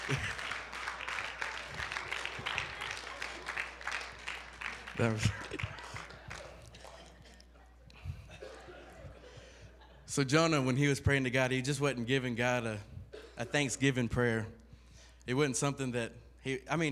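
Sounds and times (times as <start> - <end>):
audience clapping hands in praise: 0.0 - 7.5
laughter: 0.0 - 10.1
speech: 5.0 - 5.6, 10.2 - 14.6, 15.2 - 16.9.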